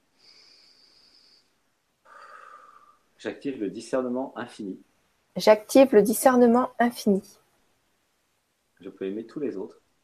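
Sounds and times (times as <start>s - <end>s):
deep breath during breathing exercise: 0.0s - 3.2s
speech: 3.2s - 7.4s, 8.8s - 9.8s.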